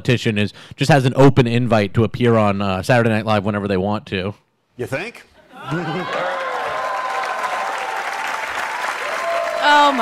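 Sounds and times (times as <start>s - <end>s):
speech: 0.0s - 6.4s, 9.6s - 10.0s
studio audience applause: 5.6s - 10.0s.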